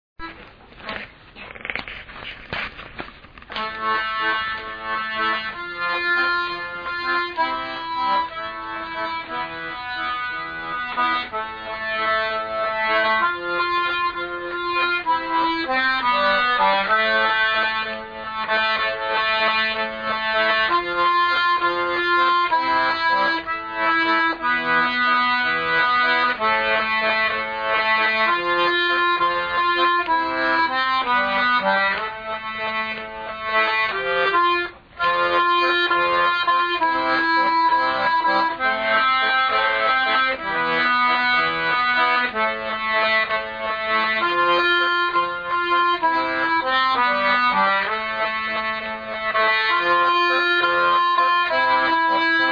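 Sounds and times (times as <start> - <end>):
waltz countermelody: 3.5 - 52.5.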